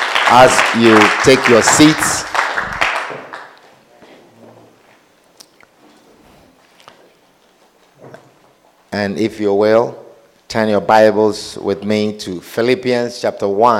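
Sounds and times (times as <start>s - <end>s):
audience clapping hands: 0.0s - 3.8s
speech: 0.3s - 2.3s, 9.0s - 13.7s.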